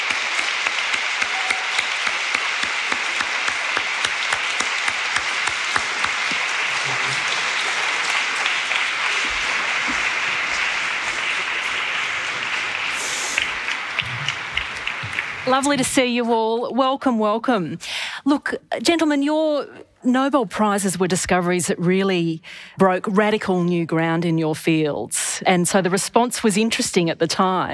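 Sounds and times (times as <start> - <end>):
warm audience applause: 0.0 - 15.8
speech: 15.5 - 27.7.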